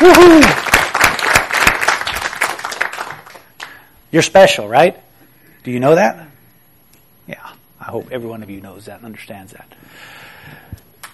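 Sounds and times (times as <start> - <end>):
speech: 0.0 - 0.7, 4.1 - 5.0, 5.6 - 6.2, 7.3 - 10.6
parents clapping for the children: 0.0 - 3.8.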